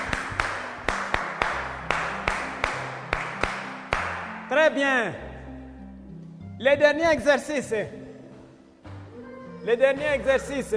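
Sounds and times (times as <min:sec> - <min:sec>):
classroom applause: 0:00.0 - 0:04.4
speech: 0:04.5 - 0:05.3, 0:06.6 - 0:08.0, 0:09.6 - 0:10.7.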